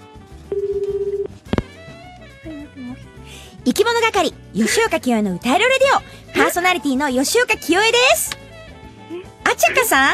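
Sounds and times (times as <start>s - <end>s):
telephone call being dialed: 0.5s - 1.3s
speech: 2.4s - 8.4s, 9.5s - 10.1s.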